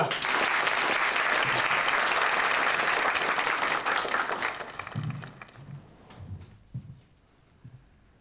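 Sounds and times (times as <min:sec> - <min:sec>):
group applauding: 0:00.0 - 0:05.9.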